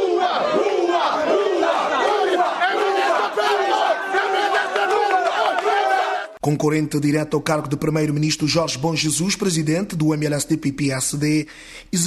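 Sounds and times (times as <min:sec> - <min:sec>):
voters booing the outgoing prime minister: 0:00.0 - 0:06.4
speech: 0:06.5 - 0:12.0.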